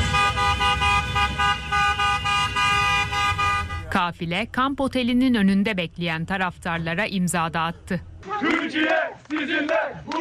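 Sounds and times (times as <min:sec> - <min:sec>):
car horns honking in a convoy welcoming the Turkish national football team: 0:00.0 - 0:04.0
speech: 0:04.0 - 0:10.1.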